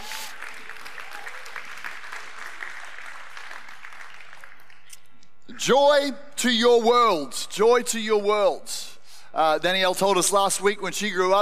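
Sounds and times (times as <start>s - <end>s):
audience applause for the band: 0.0s - 4.9s
speech: 5.6s - 11.4s.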